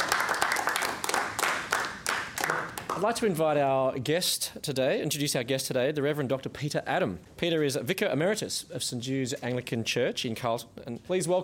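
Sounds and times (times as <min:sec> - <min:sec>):
crowd applause: 0:00.0 - 0:03.1
speech: 0:03.0 - 0:11.4.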